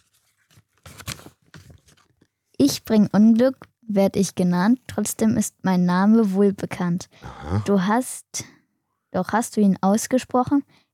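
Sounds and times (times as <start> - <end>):
old rolled-up paper note being unrolled: 0.0 - 2.2
speech: 2.6 - 10.8.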